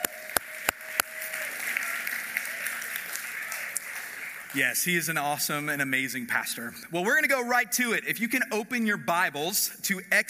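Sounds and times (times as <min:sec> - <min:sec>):
audience applause: 0:00.0 - 0:05.3
speech: 0:04.5 - 0:10.2.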